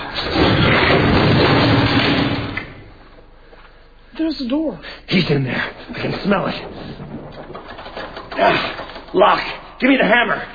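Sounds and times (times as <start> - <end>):
heavy dresser toppling over: 0.2 - 2.6, 5.9 - 9.3
speech: 4.4 - 7.1, 8.4 - 10.5.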